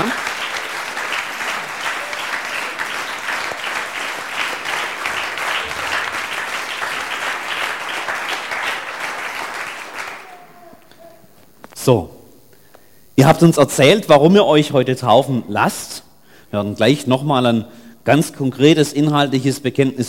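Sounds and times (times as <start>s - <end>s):
audience applause: 0.0s - 11.3s
speech: 11.9s - 12.1s, 13.2s - 20.0s.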